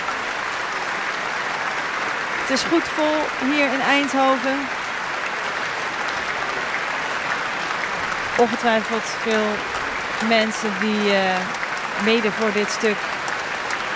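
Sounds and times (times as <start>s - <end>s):
concert audience applauding: 0.0s - 13.9s
speech: 2.5s - 4.8s, 8.4s - 13.2s.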